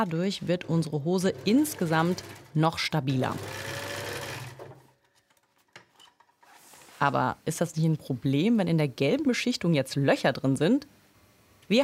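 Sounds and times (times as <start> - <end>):
speech: 0.0 - 3.8, 7.0 - 11.0, 11.7 - 11.8
sewing machine stitching a second seam on coated trousers: 0.4 - 5.0.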